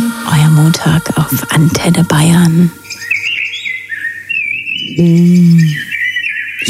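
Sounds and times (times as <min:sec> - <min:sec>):
speech: 0:00.6 - 0:02.8, 0:05.0 - 0:05.9
Common blackbird singing: 0:01.6 - 0:06.6.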